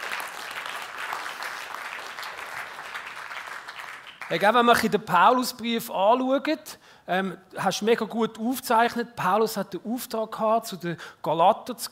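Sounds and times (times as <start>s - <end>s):
crowd clapping: 0.0s - 4.9s
speech: 4.3s - 11.9s.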